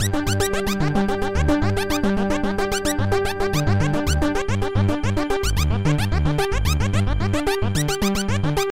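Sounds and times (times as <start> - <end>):
electro music: 0.0 - 8.6.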